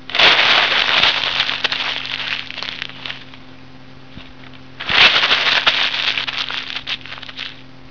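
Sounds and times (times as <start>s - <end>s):
paper: 0.1s - 3.2s, 4.8s - 7.6s.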